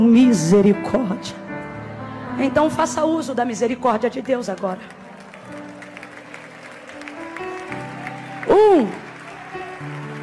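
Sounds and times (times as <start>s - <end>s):
speech: 0.0s - 1.4s, 2.4s - 5.6s, 8.5s - 9.0s
audience applause: 4.2s - 10.2s.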